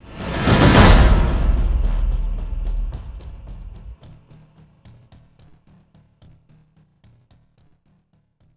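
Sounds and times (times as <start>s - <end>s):
percussion stinger: 0.0s - 7.4s.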